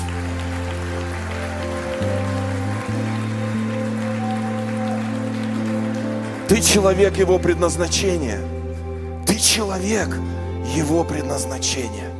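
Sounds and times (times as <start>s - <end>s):
crowd applauding: 0.0s - 8.5s
loud sustained keyboard chords: 0.0s - 12.1s
speech: 6.5s - 8.5s, 9.4s - 12.1s.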